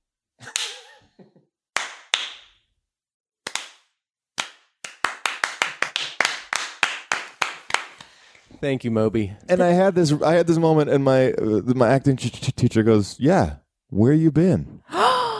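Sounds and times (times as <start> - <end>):
slow clap: 0.4 - 2.6, 3.4 - 8.4
speech: 8.6 - 15.0.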